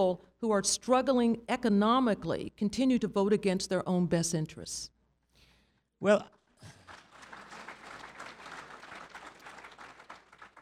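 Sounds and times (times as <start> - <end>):
speech: 0.0 - 5.0, 6.0 - 6.8
audience applause: 6.6 - 10.6.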